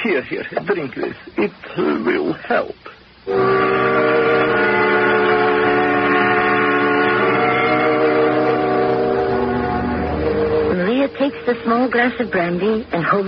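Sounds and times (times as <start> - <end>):
speech: 0.0 - 3.7, 11.2 - 13.2
wind whistling: 3.6 - 12.6.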